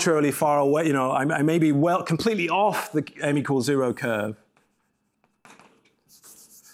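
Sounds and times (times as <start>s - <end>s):
speech: 0.0s - 4.4s
writing on a board: 4.4s - 6.7s.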